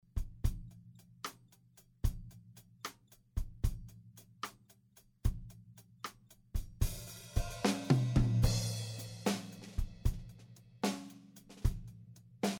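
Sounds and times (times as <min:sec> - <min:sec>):
drums: 0:00.0 - 0:12.5.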